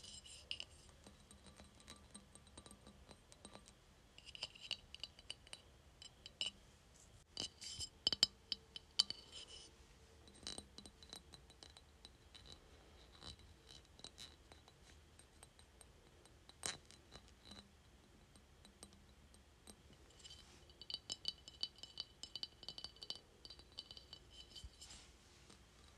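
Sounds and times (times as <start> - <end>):
quiet low hum: 0.0 - 25.9
tapping on a glass container: 0.3 - 6.6, 7.4 - 9.6, 10.2 - 15.7, 18.3 - 24.8.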